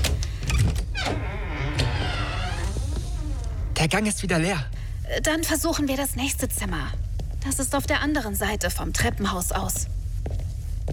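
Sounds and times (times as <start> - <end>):
door being carefully opened: 0.0 - 3.8
speech: 3.8 - 10.0.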